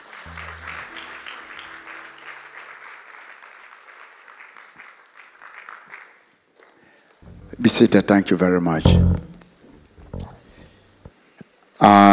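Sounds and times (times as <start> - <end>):
audience applause: 0.0 - 6.3
speech: 7.6 - 9.3.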